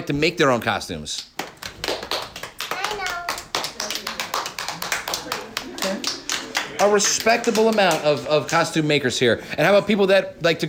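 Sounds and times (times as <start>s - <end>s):
speech: 0.0s - 1.3s, 6.8s - 10.6s
crowd clapping: 1.4s - 8.9s.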